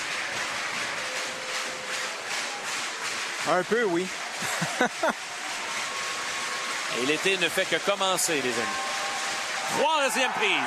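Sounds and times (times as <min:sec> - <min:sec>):
baseball stadium crowd noise: 0:00.0 - 0:10.6
speech: 0:03.4 - 0:05.3, 0:06.9 - 0:08.8, 0:09.7 - 0:10.6
laughter: 0:04.3 - 0:05.5.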